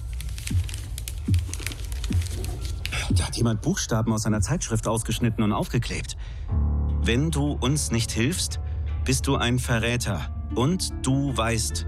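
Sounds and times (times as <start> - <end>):
soft low thumps: 0.0 - 3.3
crumpled paper being pulled open: 0.0 - 3.6
speech: 3.1 - 11.8.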